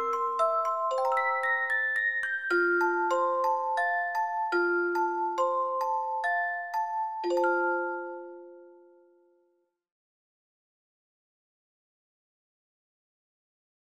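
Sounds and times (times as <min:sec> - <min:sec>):
lullaby: 0:00.0 - 0:09.8.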